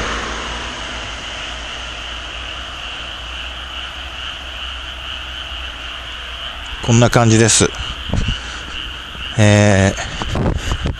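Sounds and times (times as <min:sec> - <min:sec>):
faint chirping: 0:00.0 - 0:10.9
frog croaking: 0:00.0 - 0:10.9
speech: 0:06.8 - 0:08.4, 0:09.4 - 0:10.9.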